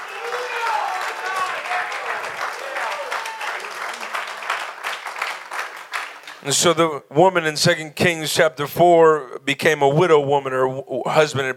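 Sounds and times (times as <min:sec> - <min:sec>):
audience clapping hands: 0:00.0 - 0:06.8
speech: 0:06.4 - 0:11.5.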